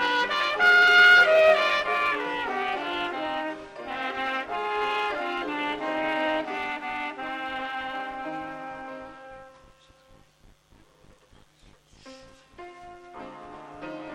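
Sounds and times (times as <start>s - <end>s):
brass band playing a hymn: 0.0s - 9.6s, 13.1s - 14.1s.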